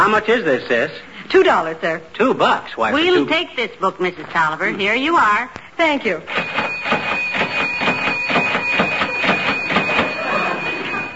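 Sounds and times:
speech: 0:00.1 - 0:07.1
cash register ringing up: 0:06.3 - 0:11.1.

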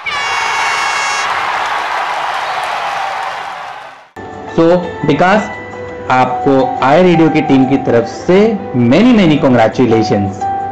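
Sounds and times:
loud applause for quiz winner: 0:00.0 - 0:04.2
speech: 0:04.6 - 0:10.4.

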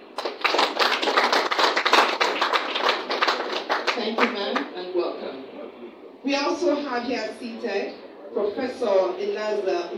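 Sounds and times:
audience applause: 0:00.1 - 0:04.0
speech: 0:06.3 - 0:09.9.

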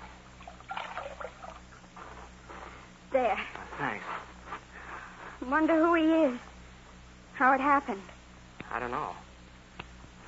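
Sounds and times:
water poured to wet a scarf: 0:00.4 - 0:01.6
speech: 0:03.2 - 0:04.3, 0:05.4 - 0:06.5, 0:07.4 - 0:08.1, 0:08.7 - 0:09.2.

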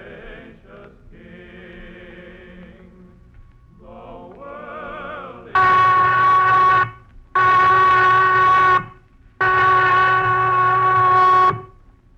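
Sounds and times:
prison whistle blasts: 0:05.6 - 0:11.8.

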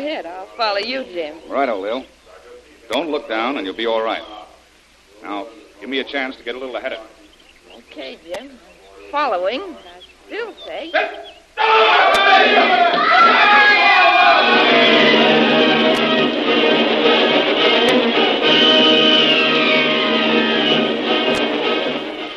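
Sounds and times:
speech: 0:00.0 - 0:02.2, 0:02.9 - 0:04.4, 0:05.2 - 0:07.2, 0:07.8 - 0:13.8
crowd of natives screaming in terror: 0:11.0 - 0:22.3.

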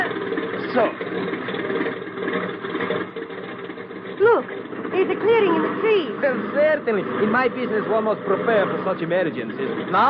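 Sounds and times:
airplane engine running while taxiing: 0:00.0 - 0:10.0
speech: 0:00.7 - 0:01.6, 0:04.2 - 0:10.0.

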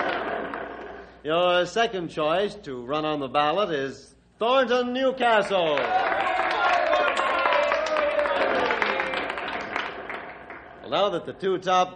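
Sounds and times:
speech: 0:01.2 - 0:06.4, 0:10.9 - 0:11.9
audience applause: 0:05.7 - 0:10.8.

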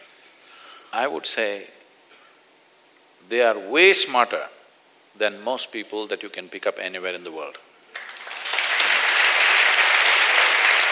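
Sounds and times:
speech: 0:00.9 - 0:01.8, 0:03.3 - 0:04.6, 0:05.2 - 0:07.7
audience applause: 0:08.0 - 0:10.9.

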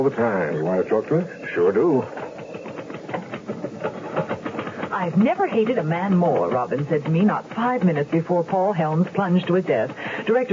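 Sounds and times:
speech: 0:00.0 - 0:02.2, 0:05.0 - 0:10.5
typewriter typing: 0:02.1 - 0:10.5.

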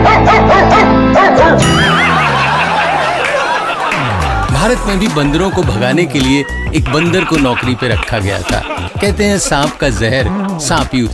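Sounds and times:
dog barking and yelping: 0:00.0 - 0:03.9
laughter: 0:00.2 - 0:11.1
speech: 0:04.8 - 0:11.1.

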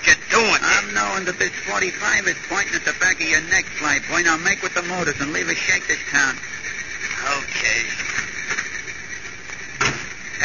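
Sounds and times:
wind: 0:00.0 - 0:10.4
speech: 0:01.1 - 0:08.2
door opening and closing in the wind: 0:09.8 - 0:10.2.

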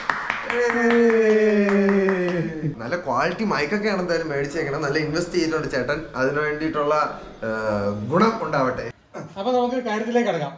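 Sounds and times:
people clapping hands to inaugurate the show: 0:00.0 - 0:02.8
speech: 0:00.5 - 0:01.3, 0:02.6 - 0:10.5.

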